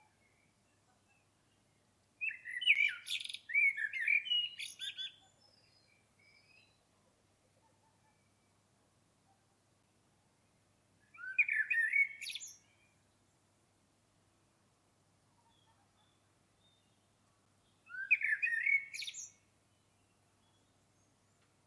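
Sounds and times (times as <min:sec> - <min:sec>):
Common blackbird singing: 0:02.2 - 0:06.8, 0:11.0 - 0:12.9, 0:15.5 - 0:21.4.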